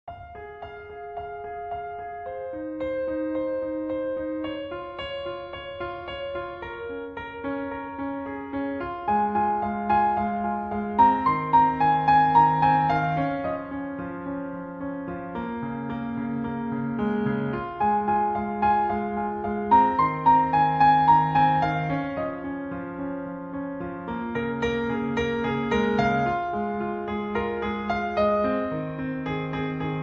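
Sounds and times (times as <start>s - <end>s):
piano cover: 0.1s - 30.0s.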